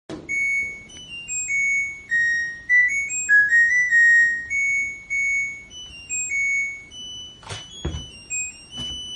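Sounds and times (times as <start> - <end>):
washing machine: 0.1 - 9.1.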